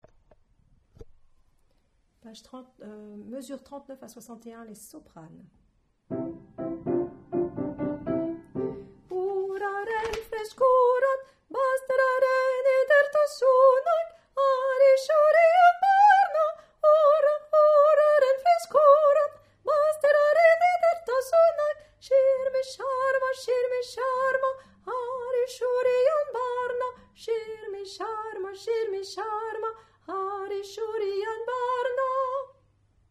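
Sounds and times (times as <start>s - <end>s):
soprano singing: 6.1s - 32.6s.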